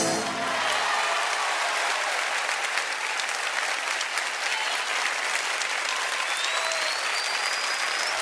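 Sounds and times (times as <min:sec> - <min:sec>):
live audience applause: 0:00.2 - 0:08.2.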